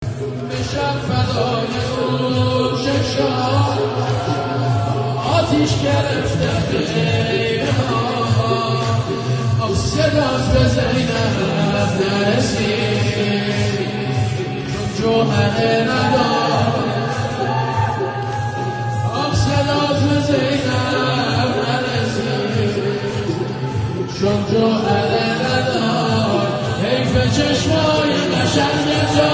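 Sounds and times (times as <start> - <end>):
mourning chant, nohe: 0.0 - 29.3.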